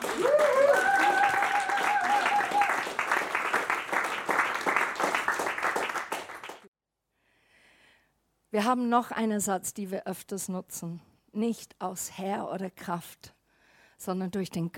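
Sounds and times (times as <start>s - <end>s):
high vocal cheer: 0.0s - 3.0s
audience applause: 0.0s - 6.7s
speech: 8.6s - 13.4s, 14.0s - 14.7s.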